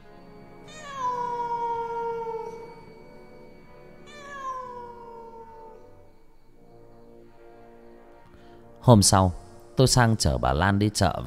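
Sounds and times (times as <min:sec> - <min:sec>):
cat with bristling fur yowling mournfully at night: 0:00.6 - 0:03.0, 0:04.0 - 0:06.1
speech: 0:08.8 - 0:11.2.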